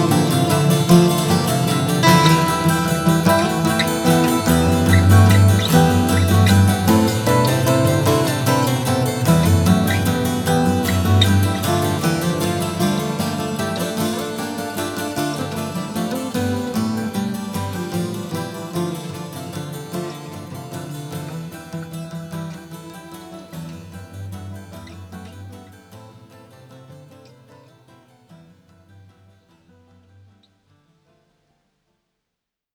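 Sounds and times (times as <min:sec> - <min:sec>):
instrumental introduction: 0:00.0 - 0:21.0.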